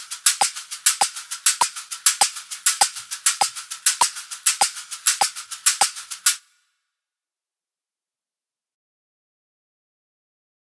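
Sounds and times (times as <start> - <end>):
two matching caxixi shakers: 0.0 - 6.5.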